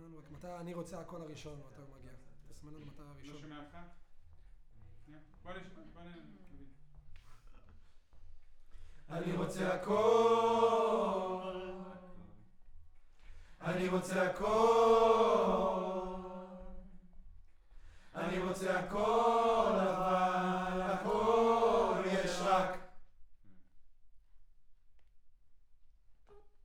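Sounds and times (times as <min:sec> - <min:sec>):
choir singing: 0:09.1 - 0:12.2, 0:13.6 - 0:17.0, 0:18.1 - 0:23.0.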